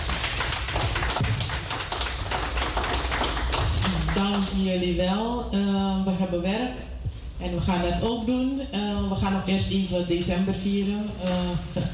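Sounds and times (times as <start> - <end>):
audience applause: 0.0 - 4.5
speech: 4.2 - 11.9.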